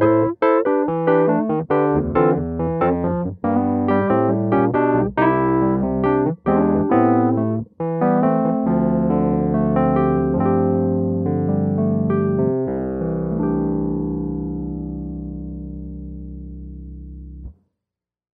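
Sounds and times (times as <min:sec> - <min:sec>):
Wurlitzer electric piano groove: 0:00.0 - 0:16.9.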